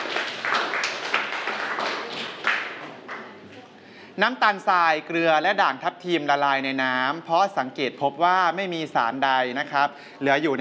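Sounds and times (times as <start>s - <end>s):
classroom of students clapping: 0.0s - 3.4s
speech: 4.2s - 10.6s.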